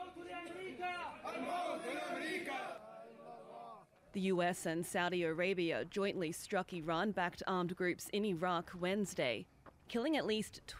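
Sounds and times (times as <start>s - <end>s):
crowd of mourners chanting and shouting: 0.0s - 3.9s
speech: 0.4s - 2.9s, 4.1s - 10.7s.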